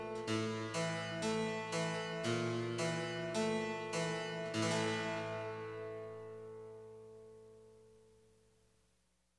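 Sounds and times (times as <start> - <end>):
piano: 0.0 - 8.2.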